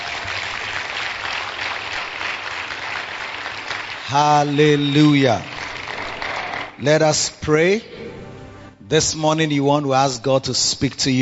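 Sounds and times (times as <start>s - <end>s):
people clapping: 0.0s - 7.0s
speech: 4.1s - 5.5s, 6.8s - 8.0s, 8.9s - 11.1s.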